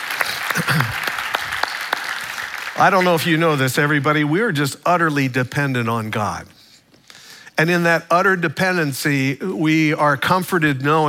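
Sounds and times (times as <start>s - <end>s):
church congregation applauding: 0.0s - 4.0s
speech: 2.8s - 6.6s, 7.6s - 11.0s.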